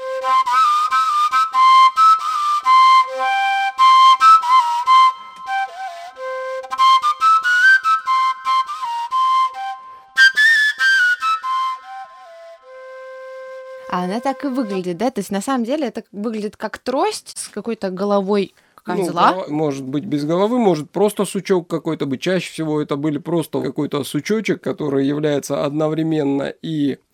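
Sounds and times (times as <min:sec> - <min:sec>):
Karelian willow flute (paju pille) playing: 0:00.0 - 0:15.0
speech: 0:14.0 - 0:27.1.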